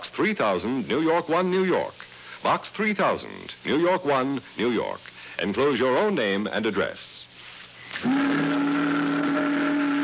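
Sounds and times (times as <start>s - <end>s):
speech: 0.2s - 7.2s
boat whistle: 8.0s - 10.0s.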